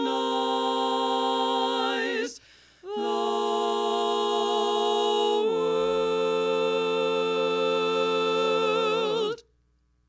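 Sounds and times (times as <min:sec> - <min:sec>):
tenor singing harmony: 0:00.0 - 0:09.4.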